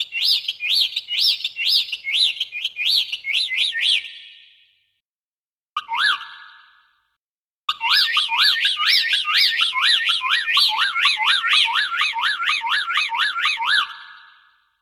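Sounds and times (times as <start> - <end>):
bird tweeting: 0.0 - 4.8, 7.8 - 14.7.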